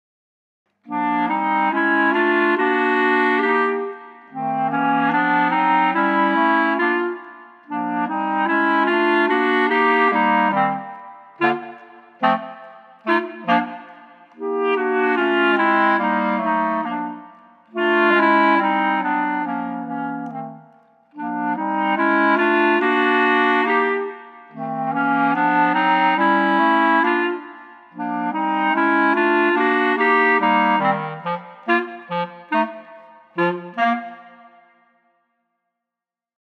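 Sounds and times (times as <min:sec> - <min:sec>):
clarinet trio: 0:00.8 - 0:34.8.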